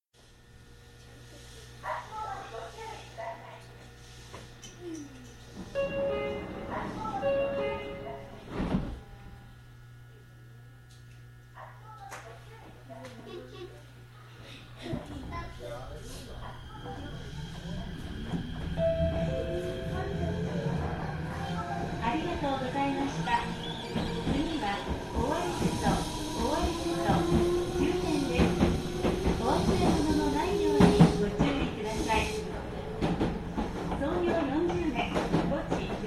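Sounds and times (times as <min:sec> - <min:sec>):
train: 0:05.2 - 0:09.2, 0:15.0 - 0:36.0.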